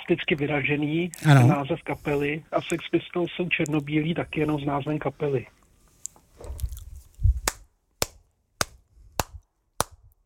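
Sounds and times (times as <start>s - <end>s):
speech: 0.1s - 5.6s
handclaps: 7.4s - 10.1s.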